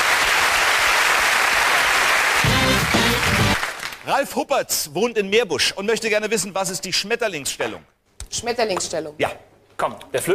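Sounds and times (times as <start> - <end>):
audience applause: 0.0 - 4.0
speech: 4.1 - 10.3.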